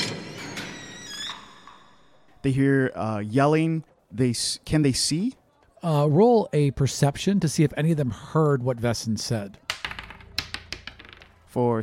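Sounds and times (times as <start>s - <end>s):
giant heavy door creaking open with a groaning squeal: 0.0s - 2.1s
speech: 2.4s - 9.6s, 11.6s - 11.8s.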